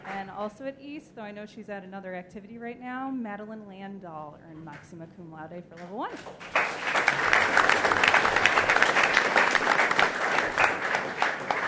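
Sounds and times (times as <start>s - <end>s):
speech: 0.4s - 6.8s
applause: 6.1s - 11.6s.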